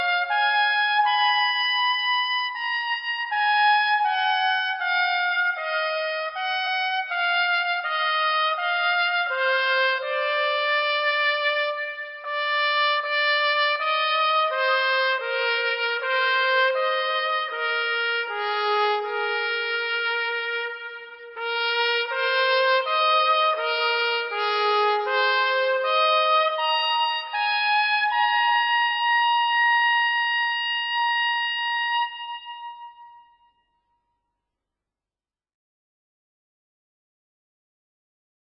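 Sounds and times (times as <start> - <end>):
trumpet solo: 0.0 - 33.3.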